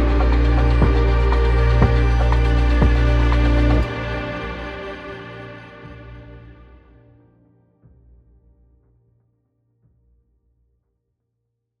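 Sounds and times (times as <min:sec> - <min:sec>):
violin: 0:00.0 - 0:07.0.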